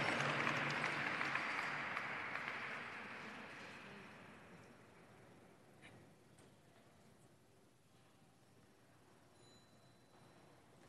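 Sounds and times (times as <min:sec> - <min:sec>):
audience applause: 0:00.0 - 0:04.6.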